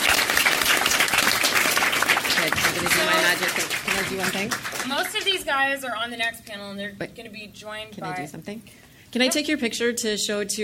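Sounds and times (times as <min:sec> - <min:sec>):
audience applause: 0:00.0 - 0:05.4
speech: 0:03.3 - 0:10.6.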